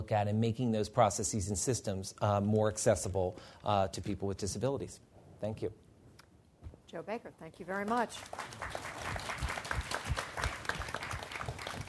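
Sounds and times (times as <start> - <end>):
speech: 0.0 - 5.8, 6.9 - 8.9
audience applause: 8.2 - 11.8.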